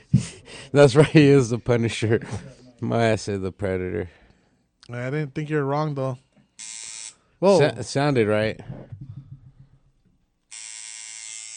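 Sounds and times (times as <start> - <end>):
speech: 0.7 - 4.2, 4.9 - 6.8, 7.4 - 9.0
homemade motor machine buzzing: 6.6 - 7.2, 10.5 - 11.5.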